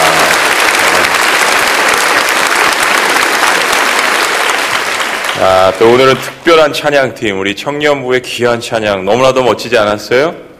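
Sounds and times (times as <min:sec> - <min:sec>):
audience applause: 0:00.0 - 0:06.4
speech: 0:05.4 - 0:10.5.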